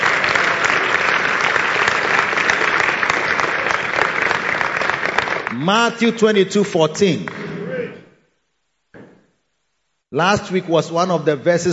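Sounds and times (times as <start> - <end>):
audience clapping: 0.0 - 6.4, 7.1 - 7.6
speech: 5.6 - 7.4, 10.1 - 11.7.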